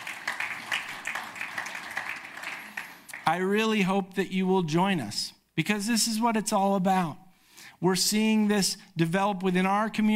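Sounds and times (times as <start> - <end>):
audience clapping: 0.0 - 3.8
speech: 3.3 - 7.2, 7.8 - 10.1.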